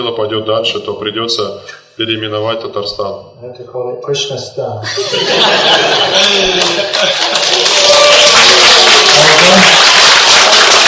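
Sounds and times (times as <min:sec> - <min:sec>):
speech: 0:00.0 - 0:08.6, 0:09.2 - 0:10.0
audience chuckling: 0:04.9 - 0:07.7
crowd clapping: 0:05.7 - 0:10.8.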